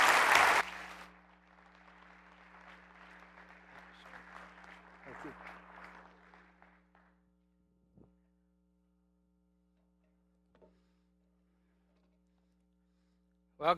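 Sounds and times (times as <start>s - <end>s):
audience applause welcoming a speaker at a church gathering: 0.0s - 7.1s.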